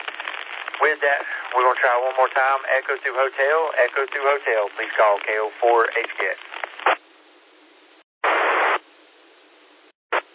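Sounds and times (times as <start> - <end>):
radio repeater keyed up with static: 0.0 - 7.0, 8.2 - 8.8, 10.1 - 10.3
speech: 0.8 - 7.0.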